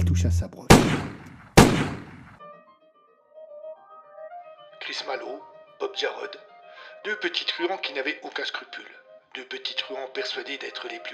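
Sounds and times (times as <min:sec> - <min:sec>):
speech: 0:00.2 - 0:01.1, 0:05.3 - 0:11.1
gunshot as trigger is pulled: 0:00.7 - 0:02.4.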